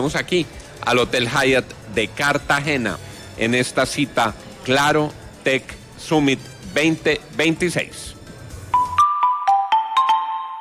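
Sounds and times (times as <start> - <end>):
speech: 0.0 - 8.1
electronic chime notes from a lottery mobile app: 8.7 - 10.6.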